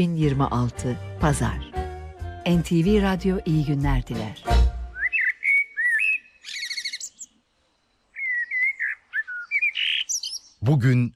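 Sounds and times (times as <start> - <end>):
speech: 0.0 - 1.7, 2.4 - 4.7, 10.6 - 11.1
common blackbird singing: 4.9 - 11.1.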